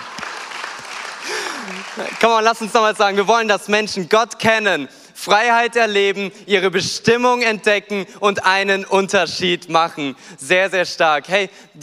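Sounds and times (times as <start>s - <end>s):
audience clapping: 0.0s - 3.0s
single voice long gliding whoop: 1.2s - 2.2s
speech: 1.9s - 11.8s.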